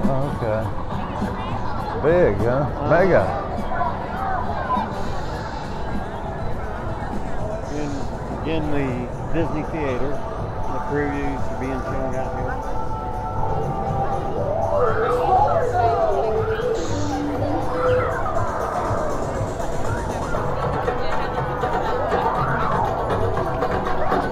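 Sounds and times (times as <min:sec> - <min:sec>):
crowd of people moving and chattering: 0:00.0 - 0:24.2
speech: 0:02.0 - 0:03.8, 0:08.5 - 0:10.3, 0:10.9 - 0:12.8.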